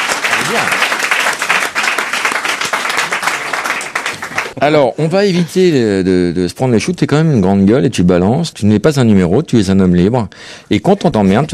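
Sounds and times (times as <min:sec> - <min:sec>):
audience applause: 0:00.0 - 0:04.6
speech: 0:00.5 - 0:00.8, 0:04.6 - 0:11.5.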